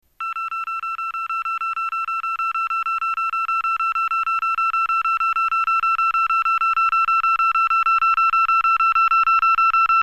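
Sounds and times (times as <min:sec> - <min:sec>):
signal device tone: 0:00.2 - 0:10.0.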